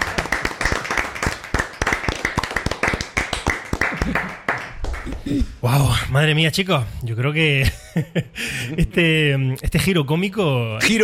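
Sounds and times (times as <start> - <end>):
audience applause: 0.0 - 5.4
speech: 5.3 - 11.0.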